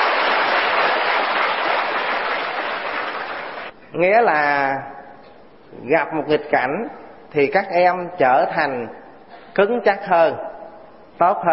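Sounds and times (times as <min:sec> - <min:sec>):
audience applause: 0:00.0 - 0:03.7
speech: 0:03.9 - 0:05.0, 0:05.7 - 0:09.0, 0:09.6 - 0:10.5, 0:11.2 - 0:11.5.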